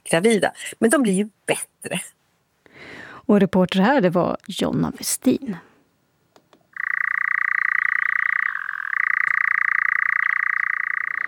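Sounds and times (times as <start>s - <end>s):
speech: 0.1s - 2.2s, 2.8s - 5.7s
European nightjar churring: 6.7s - 11.2s.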